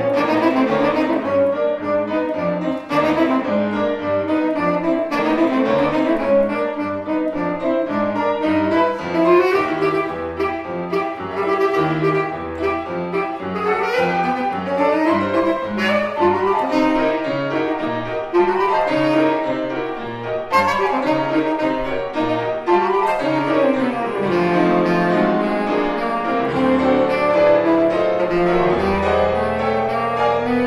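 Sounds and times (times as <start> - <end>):
saxophone: 0.0 - 30.6.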